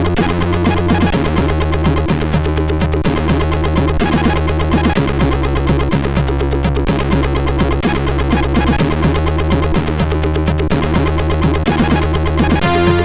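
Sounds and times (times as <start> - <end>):
MOS6581R2 sound chip intro music: 0.0 - 13.0.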